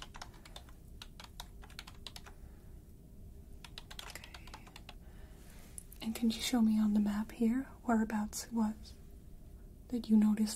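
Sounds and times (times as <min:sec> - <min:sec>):
typing on a computer keyboard: 0:00.0 - 0:02.4, 0:03.6 - 0:05.0
low steady hum: 0:00.0 - 0:10.5
speech: 0:06.1 - 0:09.0, 0:09.9 - 0:10.5.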